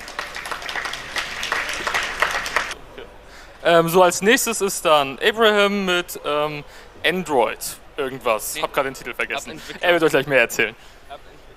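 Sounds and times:
audience applause: 0.0 - 2.8
speech: 3.6 - 11.3.

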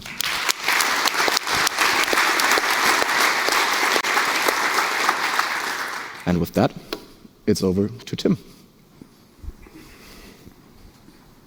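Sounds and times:
audience applause: 0.0 - 6.5
speech: 6.3 - 6.9, 7.5 - 8.6.

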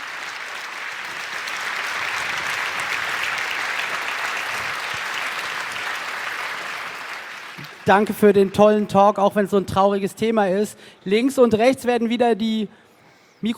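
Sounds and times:
audience applause after a talk: 0.0 - 8.8
speech: 7.9 - 12.8, 13.4 - 13.5.

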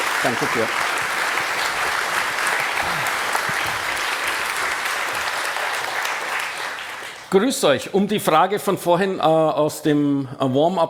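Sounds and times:
audience applause: 0.0 - 7.4
speech: 0.2 - 0.9, 7.3 - 10.8.

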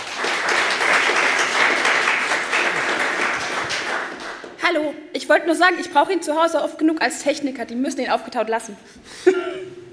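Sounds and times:
audience applause: 0.0 - 4.6
speech: 4.7 - 9.6.

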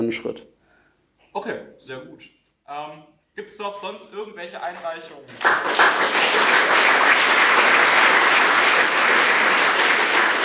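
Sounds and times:
speech: 0.0 - 0.6, 1.3 - 7.7
audience applause: 5.3 - 10.4.

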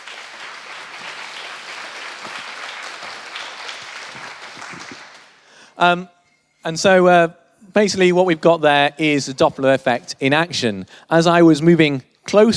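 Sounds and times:
audience applause: 0.0 - 5.5
speech: 5.8 - 12.5.

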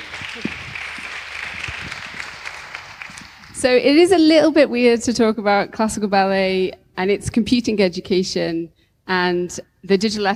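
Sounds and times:
audience applause: 0.0 - 3.6
speech: 3.6 - 10.3.

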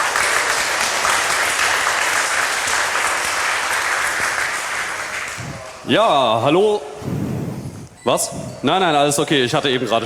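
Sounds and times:
audience applause: 0.0 - 6.0
speech: 5.9 - 7.2, 8.0 - 10.0.

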